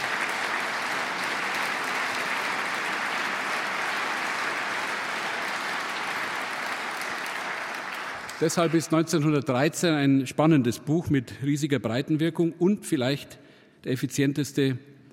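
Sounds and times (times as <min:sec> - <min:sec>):
audience applause: 0:00.0 - 0:09.0
speech: 0:08.4 - 0:14.9.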